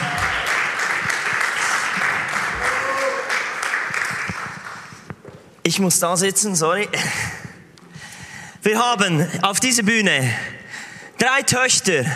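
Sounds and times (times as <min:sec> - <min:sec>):
audience applause: 0:00.0 - 0:05.0
speech: 0:05.6 - 0:07.4, 0:08.6 - 0:10.6, 0:11.2 - 0:12.1.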